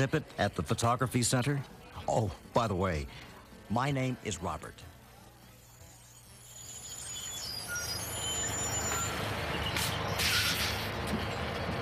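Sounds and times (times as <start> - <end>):
speech: 0.0 - 5.0
bus air brakes hissing: 8.0 - 11.0
bus pulling up with low engine rumble: 8.6 - 11.8.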